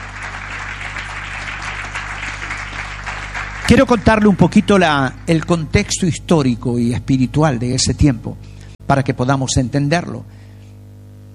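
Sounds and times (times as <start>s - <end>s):
audience applause: 0.0s - 5.7s
speech: 3.7s - 10.4s.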